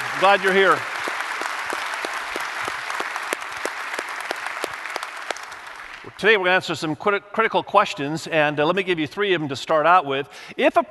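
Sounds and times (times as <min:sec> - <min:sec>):
audience applause: 0:00.0 - 0:06.2
speech: 0:00.2 - 0:00.9, 0:06.2 - 0:10.8.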